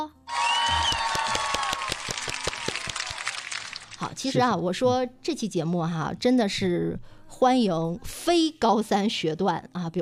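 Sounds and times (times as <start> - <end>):
applause: 0.3 - 4.0
speech: 4.1 - 9.9.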